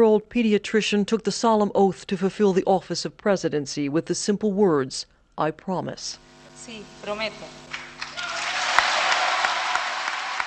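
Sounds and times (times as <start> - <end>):
speech: 0.0 - 7.6
large crowd applauding: 7.6 - 10.4
faint cheering: 7.7 - 10.4.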